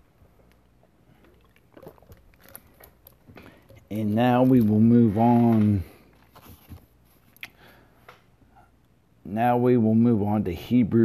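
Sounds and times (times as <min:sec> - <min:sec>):
person sipping and swallowing water: 0:00.2 - 0:04.2
speech: 0:03.9 - 0:05.9, 0:09.4 - 0:11.0.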